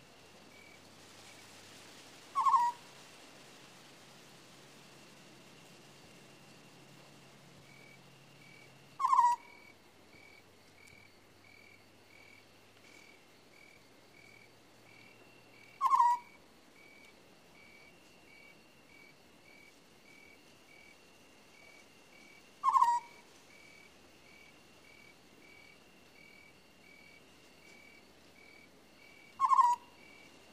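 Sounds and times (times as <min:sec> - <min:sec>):
owl screeching: 0:02.4 - 0:02.8, 0:09.0 - 0:09.6, 0:15.8 - 0:16.4, 0:22.6 - 0:23.2, 0:29.4 - 0:29.9.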